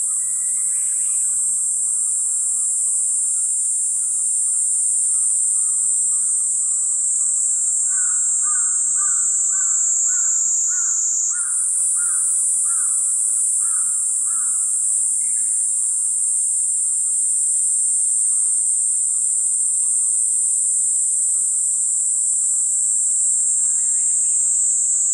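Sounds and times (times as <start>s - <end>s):
niiniizemi cicada singing solo: 0.0s - 25.1s.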